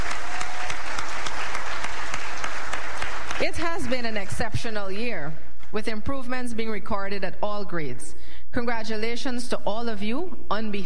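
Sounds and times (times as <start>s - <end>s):
loud applause from a large crowd: 0.0s - 4.4s
speech: 3.4s - 10.8s.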